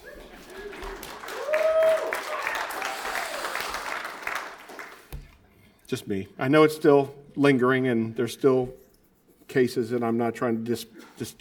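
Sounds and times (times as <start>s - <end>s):
audience clapping: 0.0s - 5.4s
person cheering: 1.3s - 3.7s
speech: 5.9s - 8.8s, 9.5s - 11.3s.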